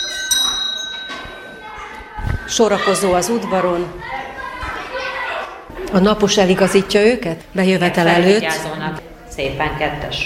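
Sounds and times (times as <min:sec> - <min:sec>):
school bell ringing for the start of class: 0:00.0 - 0:03.9
speech: 0:02.5 - 0:04.2, 0:05.9 - 0:10.2.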